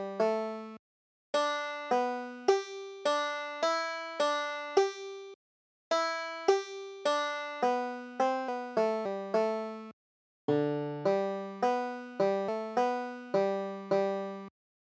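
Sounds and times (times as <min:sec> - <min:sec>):
banjo folk tune: 0:00.0 - 0:00.8, 0:01.4 - 0:05.3, 0:05.9 - 0:09.9, 0:10.5 - 0:14.5.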